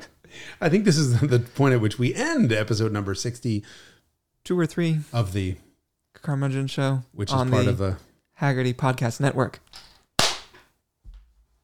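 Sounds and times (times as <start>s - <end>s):
speech: 0.6s - 9.9s
single hand clap: 10.2s - 10.7s.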